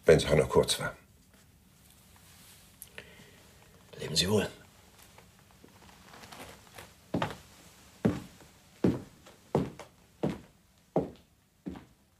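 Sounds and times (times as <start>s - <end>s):
speech: 0.1s - 1.0s, 4.0s - 4.6s
footsteps walking away down a corridor: 5.0s - 12.0s.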